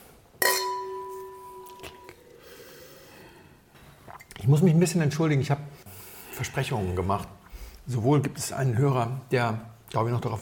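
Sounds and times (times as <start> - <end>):
wine glasses clinking in a toast: 0.4 - 2.2
speech: 4.5 - 5.8, 6.5 - 10.4.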